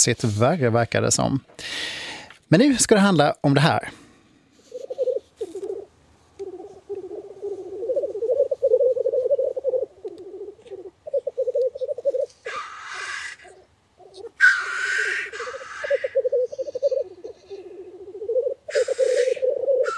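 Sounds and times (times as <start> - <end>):
speech: 0.0 - 4.0
black grouse lekking calls in early spring: 4.6 - 19.9.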